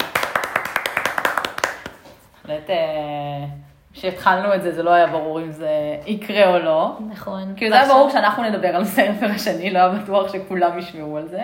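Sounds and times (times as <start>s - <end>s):
crowd hand clapping: 0.0s - 2.1s
speech: 2.5s - 11.4s.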